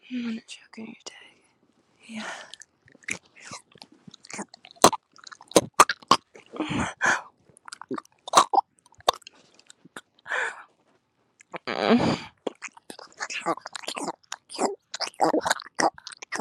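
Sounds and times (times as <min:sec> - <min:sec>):
person choking: 0:04.2 - 0:07.1, 0:07.7 - 0:09.2, 0:11.5 - 0:16.3.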